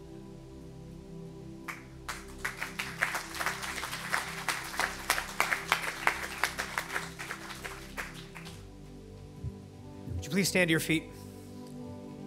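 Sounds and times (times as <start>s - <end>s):
audience applause: 1.7s - 8.6s
speech: 10.4s - 11.2s.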